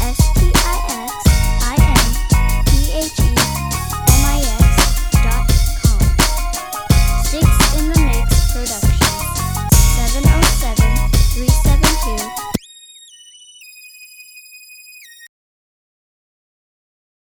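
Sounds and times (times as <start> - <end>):
summer funk music: 0.0 - 12.6.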